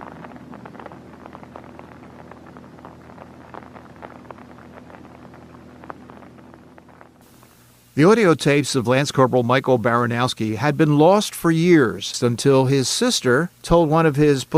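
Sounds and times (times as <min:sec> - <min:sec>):
rain falling: 0:00.0 - 0:07.9
speech: 0:08.0 - 0:14.5.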